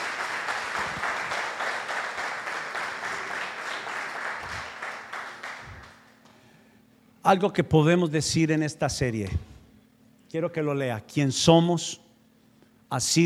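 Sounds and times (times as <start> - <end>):
audience applause: 0.0 - 6.1
speech: 7.2 - 9.5, 10.3 - 12.0, 12.9 - 13.2.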